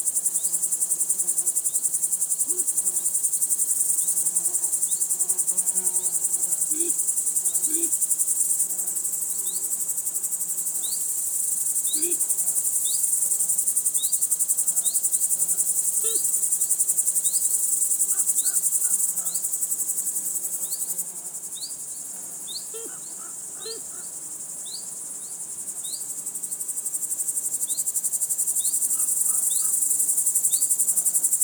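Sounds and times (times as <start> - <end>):
grasshoppers in a field: 0.0 - 31.4
insects in a field: 0.0 - 31.4
crows in a field: 22.8 - 24.1.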